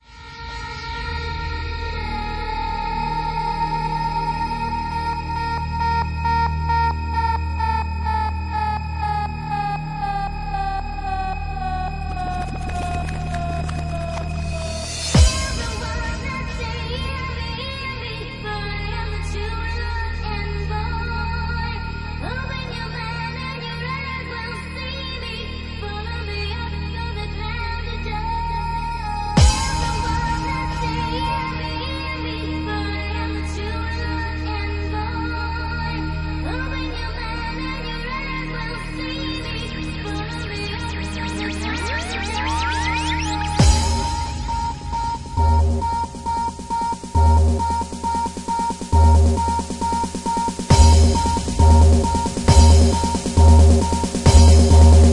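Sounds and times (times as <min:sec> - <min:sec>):
bass generator mix: 0:00.0 - 0:55.1.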